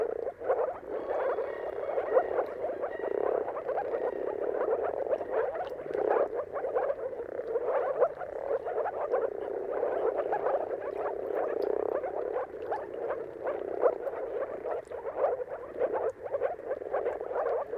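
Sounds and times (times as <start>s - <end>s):
moor frog chorus: 0.0s - 17.7s.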